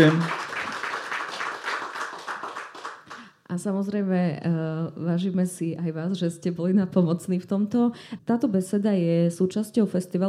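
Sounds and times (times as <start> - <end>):
speech: 0.0 - 0.4, 3.6 - 10.2
audience applause: 0.0 - 3.3.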